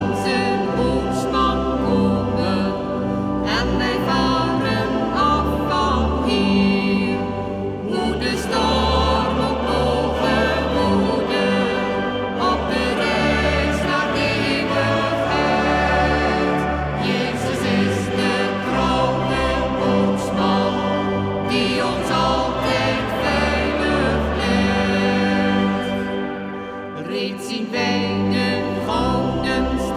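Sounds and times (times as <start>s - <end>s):
choir singing: 0.0s - 29.9s.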